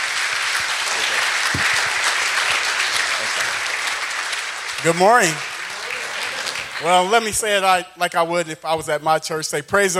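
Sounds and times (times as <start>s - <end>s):
audience applause welcoming a speaker: 0.0s - 7.3s
speech: 4.8s - 5.5s, 6.8s - 9.9s.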